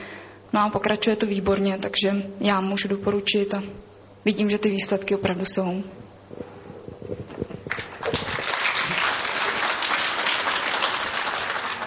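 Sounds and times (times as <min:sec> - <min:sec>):
speech: 0:00.5 - 0:06.0
applause: 0:07.7 - 0:11.8.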